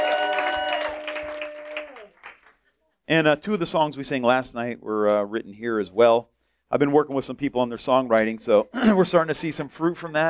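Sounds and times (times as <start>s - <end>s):
audience applause: 0.0s - 2.6s
speech: 3.1s - 10.2s.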